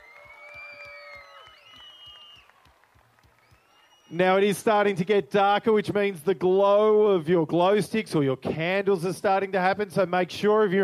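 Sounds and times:
audience applause: 0.0s - 4.4s
speech: 4.1s - 10.8s.

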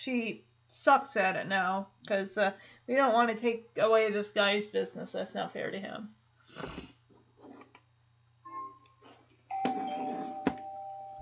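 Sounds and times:
speech: 0.0s - 6.9s
doorbell ringing: 9.5s - 11.2s.

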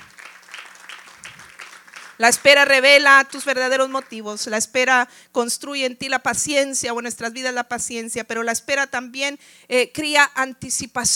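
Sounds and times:
audience applause: 0.0s - 2.8s
speech: 2.2s - 11.1s.

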